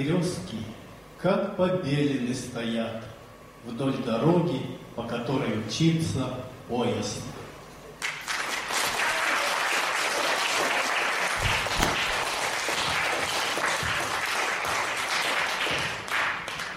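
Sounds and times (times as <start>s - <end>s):
speech: 0.0s - 7.4s
audience applause: 8.0s - 16.7s.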